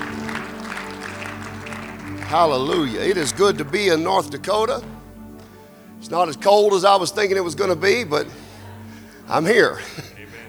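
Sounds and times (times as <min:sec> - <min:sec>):
audience clapping: 0:00.0 - 0:10.4
laughter: 0:00.0 - 0:10.4
low hum: 0:00.0 - 0:10.4
speech: 0:02.3 - 0:04.9, 0:06.0 - 0:08.4, 0:09.3 - 0:10.1.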